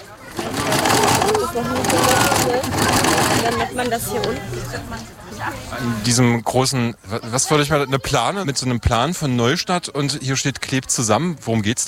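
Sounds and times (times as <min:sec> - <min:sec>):
sewing machines running: 0:00.2 - 0:04.1
speech: 0:01.5 - 0:11.8.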